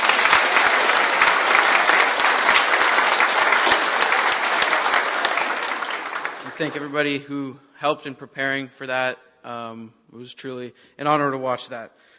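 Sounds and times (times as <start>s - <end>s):
audience applause: 0.0s - 7.0s
speech: 6.6s - 12.1s.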